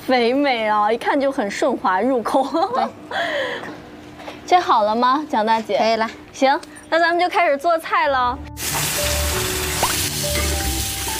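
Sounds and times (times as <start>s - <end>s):
speech: 0.1s - 3.8s, 4.5s - 8.5s
pork trotters stir-frying in a hot wok: 8.6s - 11.1s.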